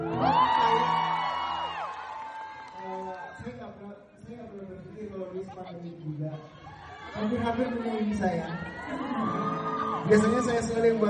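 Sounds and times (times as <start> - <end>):
steady crowd roar: 0.0 - 3.4, 6.6 - 11.0
audience whooping and cheering: 0.0 - 3.5, 6.6 - 11.0
speech: 7.2 - 9.4, 10.0 - 11.0.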